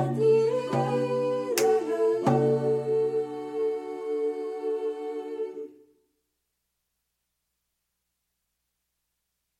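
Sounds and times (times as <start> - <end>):
choir singing: 0.0 - 5.9.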